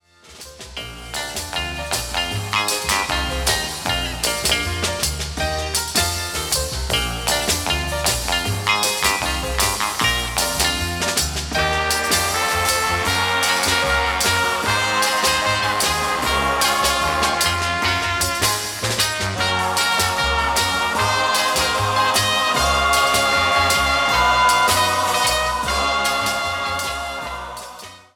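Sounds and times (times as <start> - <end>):
orchestra playing: 0.3 - 28.1
chorus singing: 12.0 - 18.4, 19.4 - 28.1.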